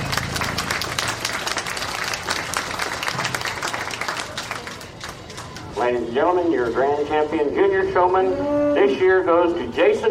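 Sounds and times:
round of applause: 0.0 - 5.8
speech: 5.9 - 10.0.

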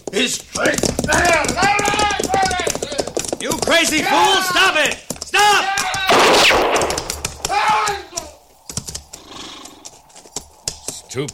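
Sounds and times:
speech: 0.1 - 1.9, 3.4 - 6.9, 11.2 - 11.3
gunshot: 6.1 - 7.9.

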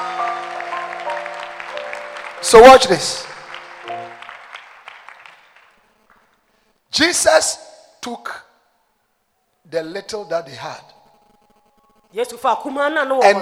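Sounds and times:
audience clapping: 0.0 - 6.7
speech: 2.4 - 3.3, 7.0 - 8.5, 9.7 - 10.9, 12.1 - 13.4.

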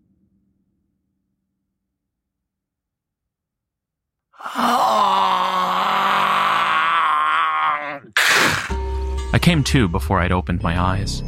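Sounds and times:
long drawn-out low strained groan: 4.4 - 8.8
short harsh burst of breathy noise: 4.4 - 9.0
speech: 9.4 - 11.2.

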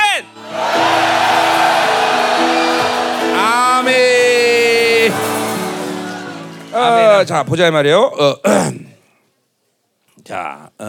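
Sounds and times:
audience shouting loudly together: 0.0 - 6.8
speech: 7.2 - 8.9, 10.2 - 10.8.

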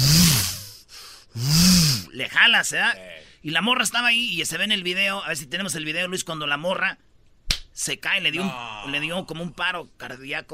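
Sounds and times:
voice imitating a gym machine motor rumble: 0.0 - 0.6, 1.4 - 2.1
speech: 2.2 - 7.1, 7.8 - 10.5.

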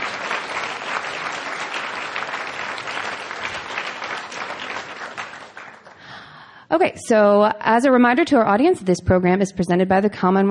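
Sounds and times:
audience applause: 0.0 - 6.2
speech: 6.8 - 10.5.

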